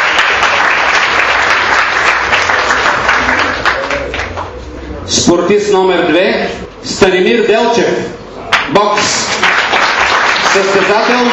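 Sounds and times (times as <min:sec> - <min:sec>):
applause: 0:00.0 - 0:04.5, 0:08.5 - 0:11.3
speech: 0:05.2 - 0:09.6, 0:10.6 - 0:11.3.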